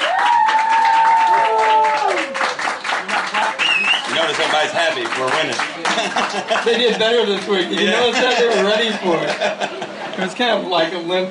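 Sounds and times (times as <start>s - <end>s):
audience applause: 0.0s - 8.4s
crowd cheering: 0.0s - 10.1s
laughter: 3.0s - 10.3s
long sliding whistles: 3.6s - 4.2s
speech: 4.6s - 11.2s.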